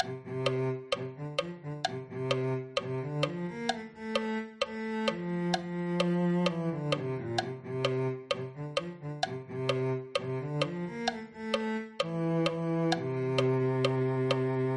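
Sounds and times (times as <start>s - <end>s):
cello: 0.0s - 14.7s.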